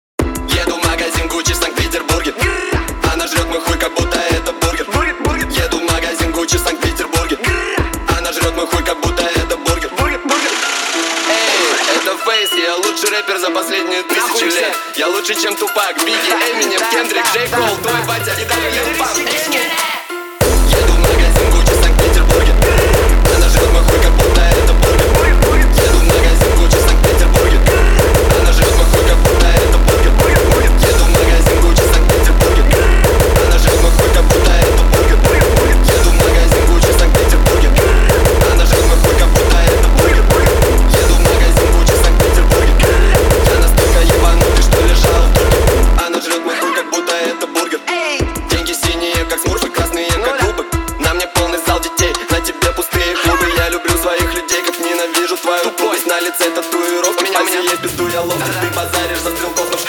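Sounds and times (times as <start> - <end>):
hardstyle remix: 0.2 - 59.8.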